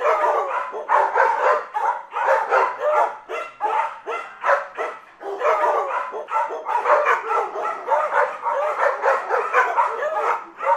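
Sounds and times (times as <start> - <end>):
pack of dogs barking and yelping: 0.0 - 10.7.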